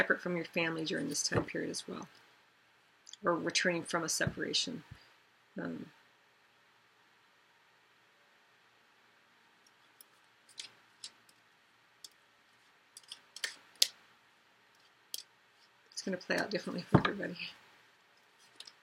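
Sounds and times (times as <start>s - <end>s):
speech: 0.0s - 2.2s, 3.2s - 5.0s, 5.6s - 6.0s, 16.0s - 17.6s
cards being handled: 10.1s - 11.3s, 13.0s - 14.0s.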